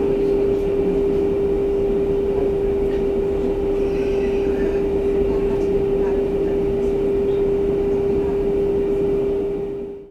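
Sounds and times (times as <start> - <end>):
suburban railway train cabin interior: 0.0 - 10.0.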